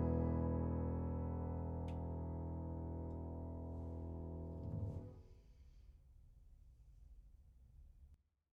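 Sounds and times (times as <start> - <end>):
piano piece: 0.0 - 5.1.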